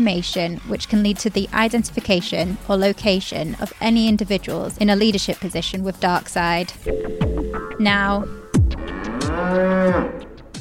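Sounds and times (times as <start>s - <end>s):
speech: 0.0s - 8.4s, 9.3s - 10.2s
Aberdeen Angus cow mooing on a farm in Forfar, Angus: 8.7s - 10.4s.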